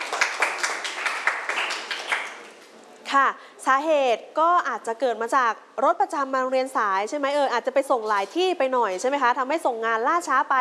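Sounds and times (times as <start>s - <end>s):
students clapping: 0.0s - 2.6s
speech: 3.1s - 10.5s.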